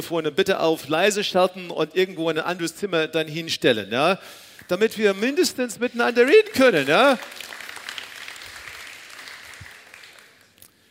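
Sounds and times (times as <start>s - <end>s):
speech: 0.0s - 7.6s
audience applause: 6.4s - 10.6s
women clapping: 6.5s - 10.6s.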